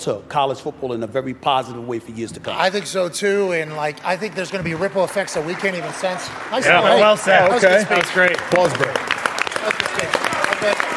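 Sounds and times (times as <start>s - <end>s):
speech: 0.0s - 9.0s
live audience applause: 4.1s - 10.9s.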